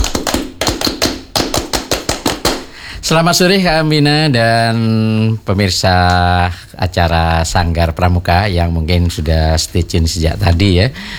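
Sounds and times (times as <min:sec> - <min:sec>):
rhythmic hand clapping of a Scout clap: 0:00.0 - 0:02.8
speech: 0:03.1 - 0:11.1.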